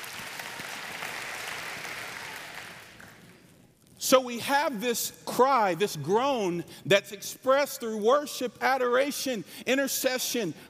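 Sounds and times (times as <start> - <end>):
audience applause: 0.0 - 3.4
speech: 4.1 - 10.6.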